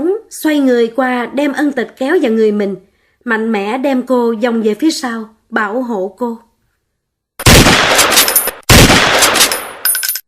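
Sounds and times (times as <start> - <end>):
speech: 0.3 - 6.5
two simultaneous gunshots: 7.4 - 9.8.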